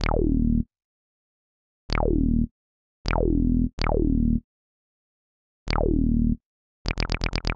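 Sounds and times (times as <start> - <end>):
synth bass: 0.0 - 0.7, 1.9 - 2.5, 3.1 - 4.4, 5.7 - 7.5.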